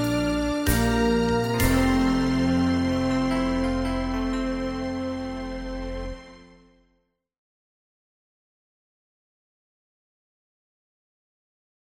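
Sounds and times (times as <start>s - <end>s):
easy listening and classical music: 0.0s - 7.0s.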